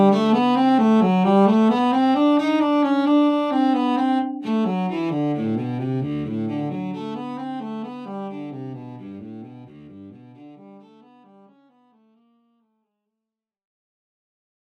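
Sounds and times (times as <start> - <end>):
cello piece: 0.0 - 11.8.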